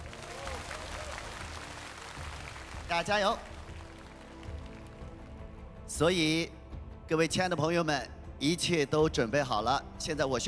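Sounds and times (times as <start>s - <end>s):
audience applause at an evening singing competition show: 0.0s - 5.1s
speech: 2.9s - 3.5s, 5.9s - 10.4s.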